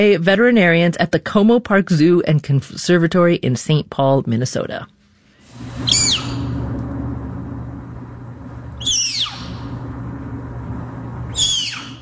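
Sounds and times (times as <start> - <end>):
speech: 0.0 - 5.0, 5.6 - 6.2
snow leopard cub squeaking while being weighed by veterinarians: 5.9 - 6.4, 8.8 - 9.6, 11.4 - 12.0.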